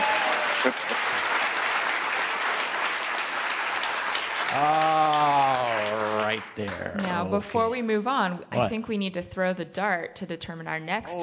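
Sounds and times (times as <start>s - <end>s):
audience applause: 0.0s - 7.5s
speech: 0.6s - 1.1s, 4.6s - 4.8s, 6.4s - 11.2s.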